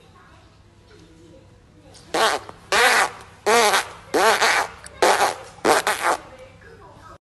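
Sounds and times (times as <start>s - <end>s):
monkey blowing raspberries: 2.1s - 6.2s.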